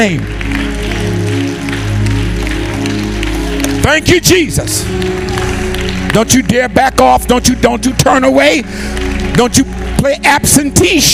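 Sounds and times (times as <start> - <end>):
speech: 0.0 - 0.6, 3.9 - 5.4, 6.1 - 11.1
audience clapping: 0.0 - 11.1.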